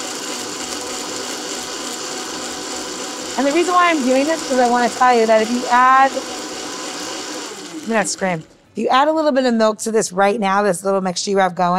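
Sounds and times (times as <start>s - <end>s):
blender blending a drink mixture: 0.0s - 8.6s
speech: 3.4s - 6.4s, 7.9s - 11.7s.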